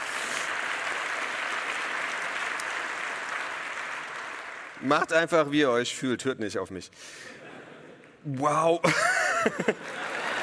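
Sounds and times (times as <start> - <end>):
audience applause: 0.0 - 5.3, 9.8 - 10.4
speech: 4.8 - 7.4, 8.2 - 10.1
laughter: 7.2 - 10.4.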